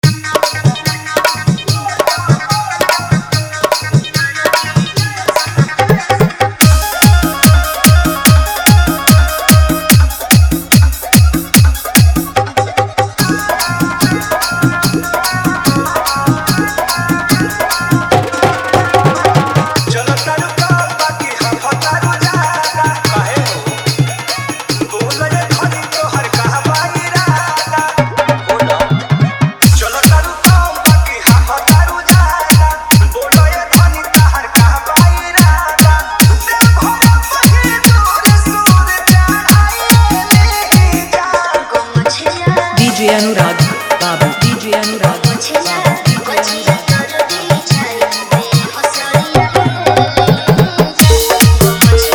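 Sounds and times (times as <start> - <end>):
music mix: 0.0 - 52.1.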